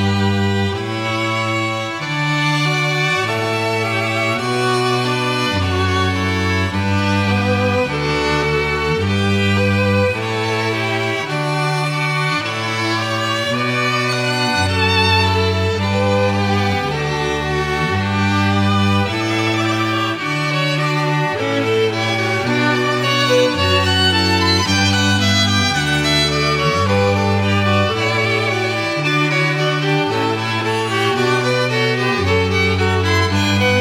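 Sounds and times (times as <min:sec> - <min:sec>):
string quartet playing: 0:00.0 - 0:33.7.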